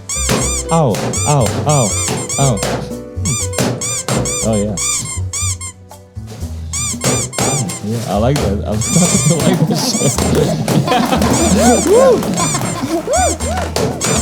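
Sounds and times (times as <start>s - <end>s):
rubber balloons squeaking while being squeezed: 0.0s - 14.2s
speech: 0.6s - 5.2s, 7.1s - 14.2s
laughter: 8.8s - 14.2s
person exclaiming: 11.4s - 13.7s.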